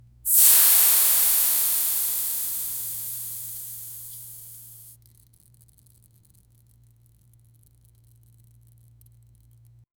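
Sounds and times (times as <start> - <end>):
low rich liquid pour: 0.3 - 4.8.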